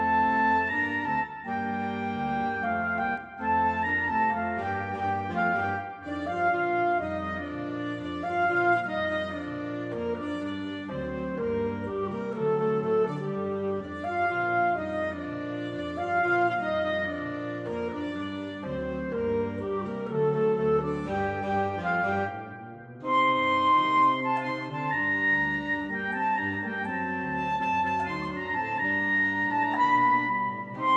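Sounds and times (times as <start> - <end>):
clarinet in orchestra: 0.0 - 30.9.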